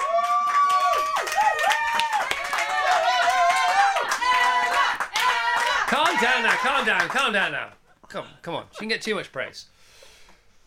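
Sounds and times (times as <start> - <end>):
whoops and cheering voices: 0.0 - 6.9
control room group applause: 0.0 - 7.6
speech: 6.2 - 10.0.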